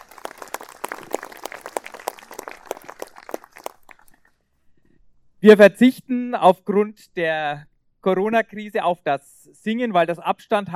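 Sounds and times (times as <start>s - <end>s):
scattered audience applause: 0.0s - 4.3s
speech: 5.4s - 10.7s.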